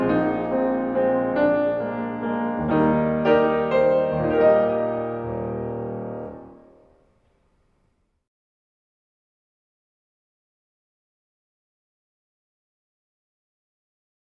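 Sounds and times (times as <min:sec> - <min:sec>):
musical accompaniment: 0:00.0 - 0:06.8.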